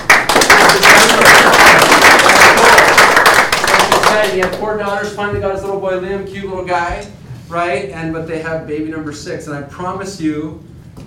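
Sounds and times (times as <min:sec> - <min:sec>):
crowd applause: 0:00.0 - 0:04.5
speech: 0:04.4 - 0:10.7.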